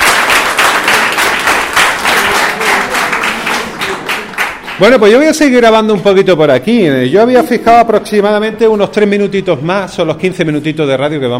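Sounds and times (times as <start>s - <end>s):
audience applause: 0.0s - 5.0s
speech: 4.8s - 11.3s.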